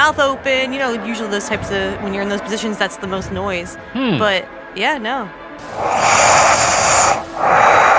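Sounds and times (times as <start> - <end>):
speech: 0.1 - 7.6
heavy nasal breathing during sleep: 5.6 - 7.9.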